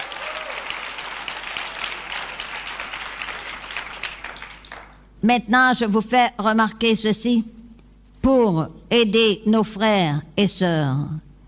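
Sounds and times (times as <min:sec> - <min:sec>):
audience applauding: 0:00.0 - 0:05.1
speech: 0:05.2 - 0:07.6, 0:08.2 - 0:11.3.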